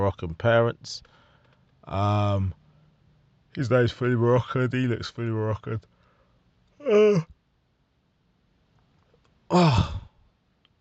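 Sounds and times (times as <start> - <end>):
speech: 0.1 - 1.2, 1.8 - 2.6, 3.6 - 5.9, 6.8 - 7.3, 9.5 - 10.0
big voiced yawn: 6.8 - 7.3, 9.5 - 10.2.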